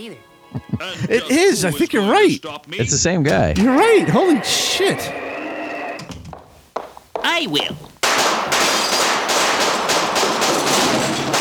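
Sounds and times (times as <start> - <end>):
speech: 0.0 - 5.3, 7.2 - 7.9
laughter: 0.4 - 5.1
rapid gunfire in a Six Million Dollar Man Christmas special: 8.0 - 11.3.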